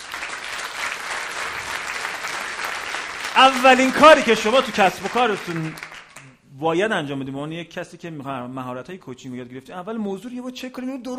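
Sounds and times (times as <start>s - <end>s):
audience applause: 0.0s - 6.3s
speech: 3.4s - 5.8s, 6.6s - 11.1s.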